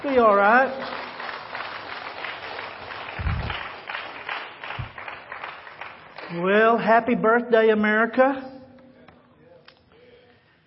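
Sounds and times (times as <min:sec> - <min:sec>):
speech: 0:00.0 - 0:01.0, 0:06.3 - 0:08.5
crowd applause: 0:00.8 - 0:06.3
low thumps: 0:03.2 - 0:03.6.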